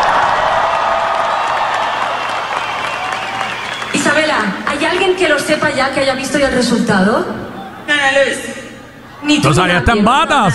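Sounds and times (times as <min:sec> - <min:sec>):
audience applause: 0:00.0 - 0:05.6
speech: 0:05.1 - 0:07.4, 0:08.0 - 0:08.6, 0:09.2 - 0:10.5.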